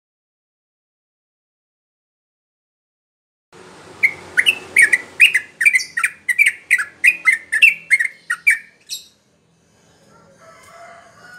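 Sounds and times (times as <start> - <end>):
Yellow-vented Bulbul song: 3.9 - 9.2.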